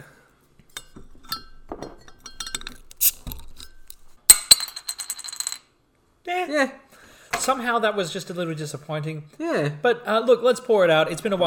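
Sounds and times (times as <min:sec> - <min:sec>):
beer bottle being cracked open: 0:02.5 - 0:04.6
speech: 0:06.3 - 0:06.8, 0:07.4 - 0:11.4.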